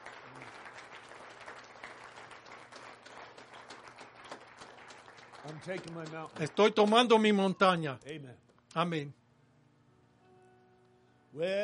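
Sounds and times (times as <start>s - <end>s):
audience applause: 0.0s - 7.3s
speech: 5.5s - 9.2s, 11.4s - 11.6s.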